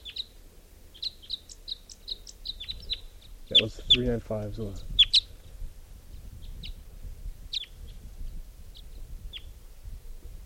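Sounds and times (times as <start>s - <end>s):
wild bird calling: 0.0s - 5.5s, 6.1s - 6.8s, 7.5s - 8.1s, 8.7s - 9.6s
speech: 3.5s - 4.9s.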